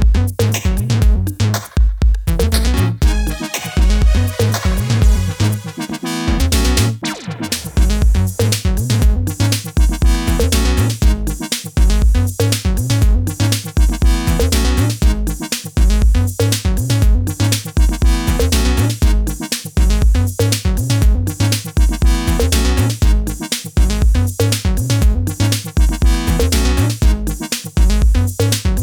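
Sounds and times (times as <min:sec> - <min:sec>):
phase lock bass: 0:00.0 - 0:28.8.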